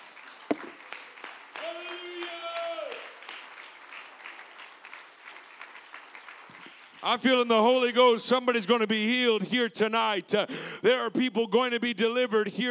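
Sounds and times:
audience clapping hands: 0.0 - 7.2
speech: 7.0 - 12.6.

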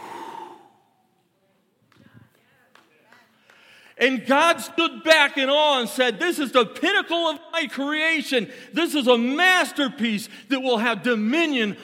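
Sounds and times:
man exhaling forcefully imitating God breathing life into Adam: 0.0 - 1.0
speech: 4.0 - 11.8.

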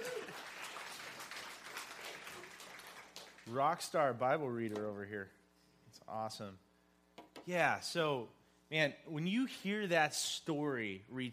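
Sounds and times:
audience hand clapping: 0.0 - 4.0
speech: 3.5 - 5.4, 6.1 - 6.7, 7.4 - 11.3.

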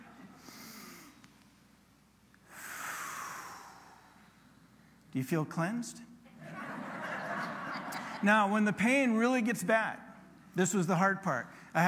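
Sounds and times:
slow breath drawn in through the nose: 2.4 - 4.4
exhale through pursed lips with a faint whistling hiss: 2.4 - 5.0
speech: 5.2 - 6.1, 8.2 - 11.8
laughter: 6.3 - 8.3.

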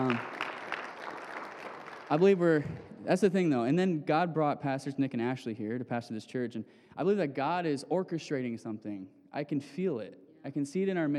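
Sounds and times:
speech: 0.0 - 0.4, 2.1 - 11.1
audience clapping: 0.0 - 3.1.

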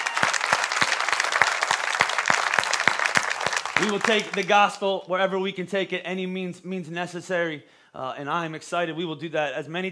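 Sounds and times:
audience applause: 0.0 - 4.6
speech: 3.8 - 9.9.

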